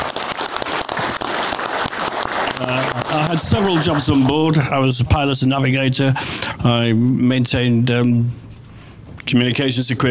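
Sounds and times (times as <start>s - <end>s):
audience round of applause: 0.0s - 4.6s
speech: 2.6s - 8.5s, 9.3s - 10.1s.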